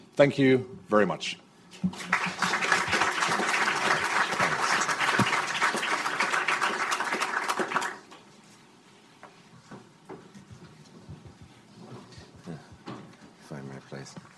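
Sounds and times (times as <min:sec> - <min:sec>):
speech: 0:00.2 - 0:02.4
audience applause: 0:01.9 - 0:08.1.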